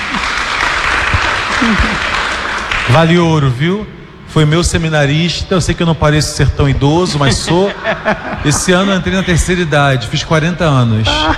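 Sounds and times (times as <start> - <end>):
church congregation applauding a priest: 0.0 - 3.6
laughter: 1.4 - 2.2, 7.0 - 9.7, 11.0 - 11.3
speech: 1.6 - 2.0, 2.9 - 11.3.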